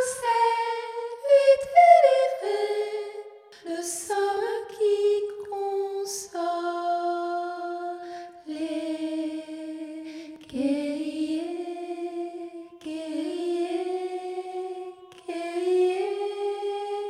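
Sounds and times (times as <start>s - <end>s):
soprano singing a chorale: 0.0s - 17.0s.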